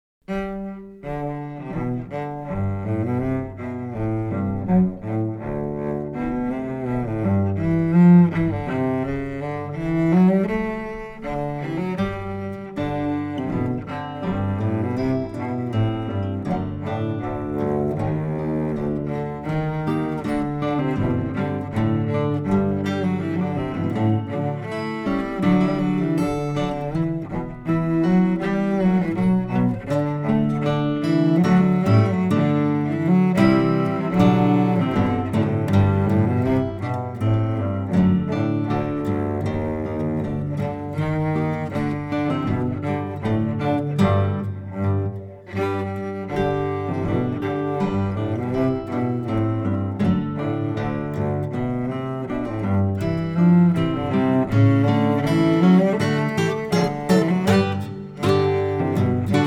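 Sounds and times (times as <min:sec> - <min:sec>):
guitar: 0:00.2 - 0:59.4.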